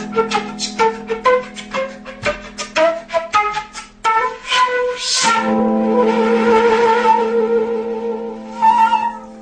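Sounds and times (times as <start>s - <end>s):
beatbox: 0.0s - 4.3s
flute: 0.0s - 9.4s
piano: 0.0s - 9.4s.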